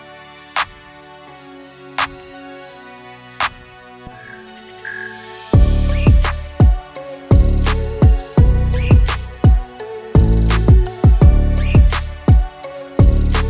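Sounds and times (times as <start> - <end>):
metal music: 4.0 - 13.4.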